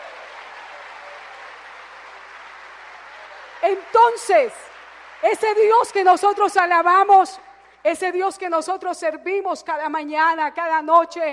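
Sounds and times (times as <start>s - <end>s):
audience applause: 0.0s - 7.8s
speech: 3.6s - 4.6s, 5.2s - 11.3s.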